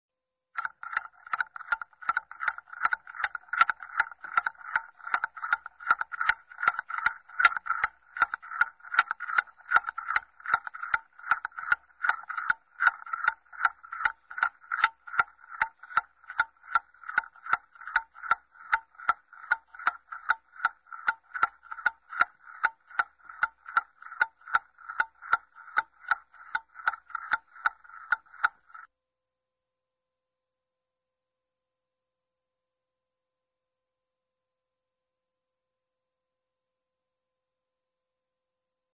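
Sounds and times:
clock ticking: 0.6s - 28.9s.

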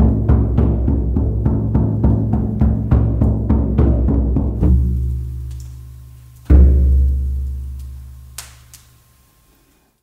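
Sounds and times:
shaman frame drum: 0.0s - 8.4s
campfire crackling: 4.1s - 9.3s.

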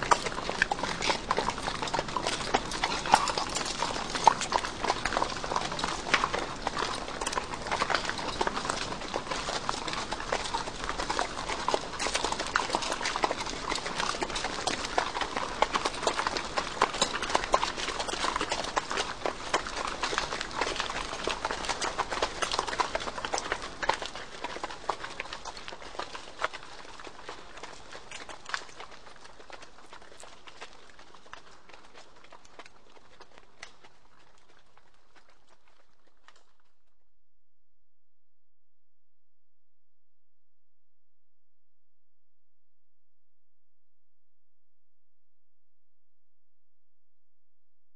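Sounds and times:
horses walking past: 0.0s - 37.0s.

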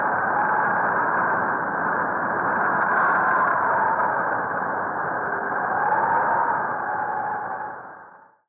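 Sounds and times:
arctic storm: 0.0s - 8.4s.

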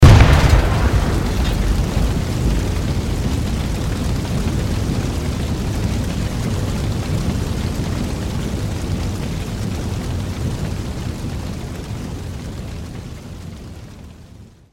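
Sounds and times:
explosion: 0.0s - 10.5s
fire burning: 0.0s - 14.7s.

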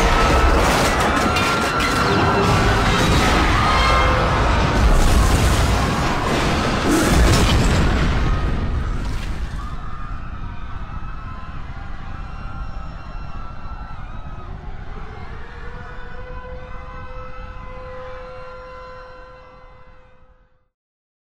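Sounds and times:
nuclear explosion in a disaster scene: 0.0s - 10.8s.

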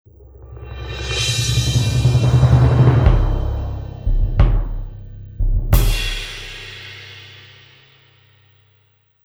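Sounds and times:
drum break: 1.6s - 8.1s.

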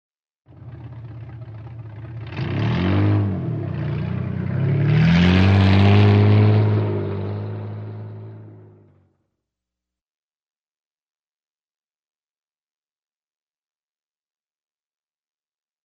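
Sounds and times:
vehicle driving away: 0.5s - 9.1s.

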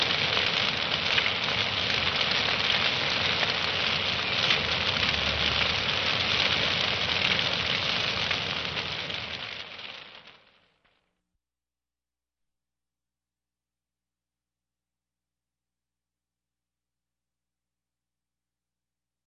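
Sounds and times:
forest fire burning: 0.0s - 10.7s.

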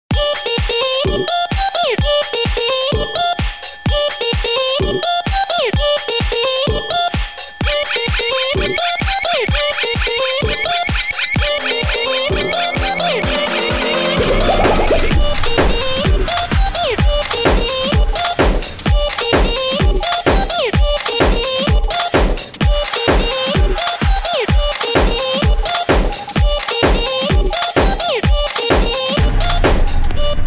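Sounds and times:
rhythmic funny music: 0.1s - 30.4s
burping: 14.2s - 15.2s.

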